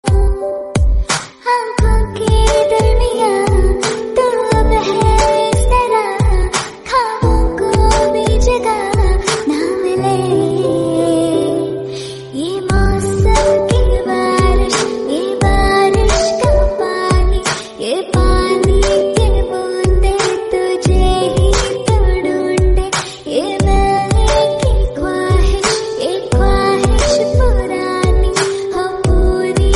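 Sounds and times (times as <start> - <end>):
Bollywood romantic song: 0.0 - 29.7.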